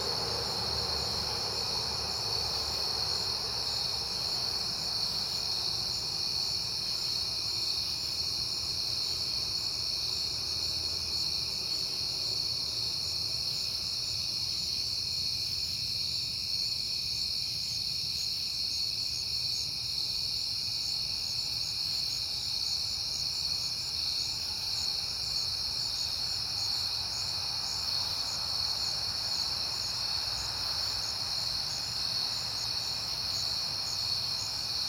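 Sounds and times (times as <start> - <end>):
crickets trilling: 0.0 - 34.8.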